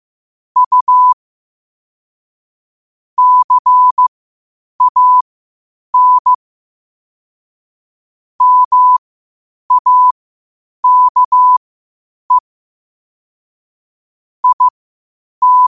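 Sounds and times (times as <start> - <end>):
morse code beeps at 5 wpm: 0.6 - 1.2, 3.2 - 4.0, 4.8 - 5.2, 6.0 - 6.4, 8.4 - 9.0, 9.7 - 10.2, 10.8 - 11.6, 14.4 - 14.7, 15.4 - 15.6.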